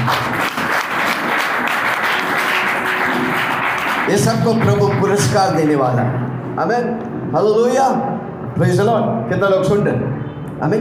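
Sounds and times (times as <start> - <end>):
audience clapping: 0.0 - 5.7
speech: 4.1 - 10.7.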